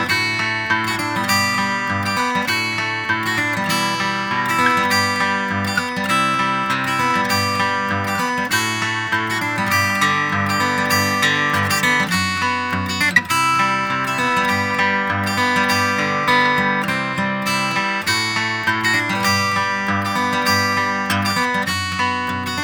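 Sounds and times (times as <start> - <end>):
acoustic guitar: 0.0 - 22.6.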